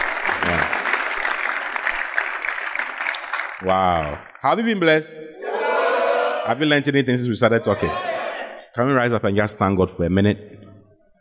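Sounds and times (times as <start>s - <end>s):
audience clapping at a church talk: 0.0s - 5.0s
speech: 3.6s - 5.4s, 6.4s - 8.1s, 8.7s - 10.5s.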